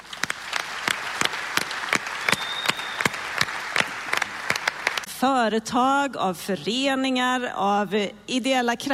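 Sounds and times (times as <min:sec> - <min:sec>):
audience applause: 0:00.0 - 0:05.1
speech: 0:05.2 - 0:08.9.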